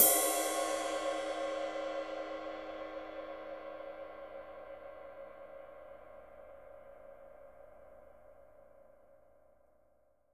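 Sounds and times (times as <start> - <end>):
ride cymbal played fortissimo on a drum kit: 0.0 - 3.2.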